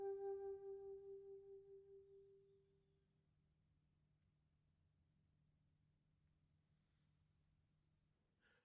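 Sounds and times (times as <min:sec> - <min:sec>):
solo flute sonata allegretto e poco rubato: 0:00.0 - 0:01.6.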